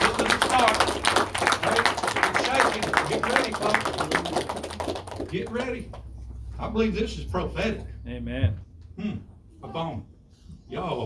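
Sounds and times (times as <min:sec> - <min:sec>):
audience clapping: 0:00.0 - 0:06.2
speech: 0:05.4 - 0:10.1, 0:10.7 - 0:11.0.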